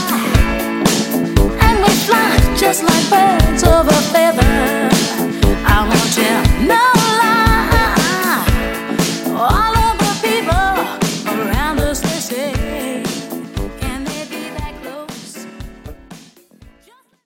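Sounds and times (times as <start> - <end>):
70s disco drum beat at 118 BPM: 0.0 - 16.9.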